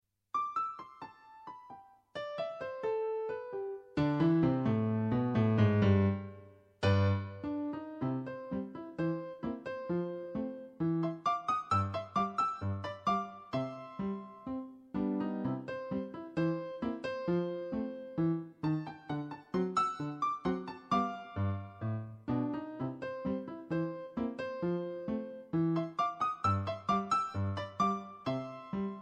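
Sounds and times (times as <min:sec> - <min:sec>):
piano ringtone: 0:00.4 - 0:29.0.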